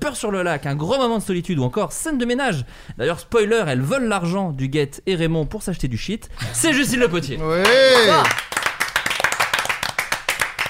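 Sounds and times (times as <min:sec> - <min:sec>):
speech: 0:00.0 - 0:08.5
person clapping hands in applause for themselves: 0:07.6 - 0:10.6.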